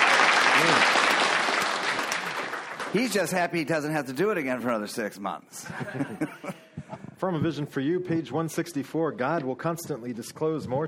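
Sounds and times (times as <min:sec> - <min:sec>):
audience applause: 0:00.0 - 0:03.4
speech: 0:02.9 - 0:06.6, 0:07.2 - 0:10.8
laughter: 0:05.6 - 0:07.0.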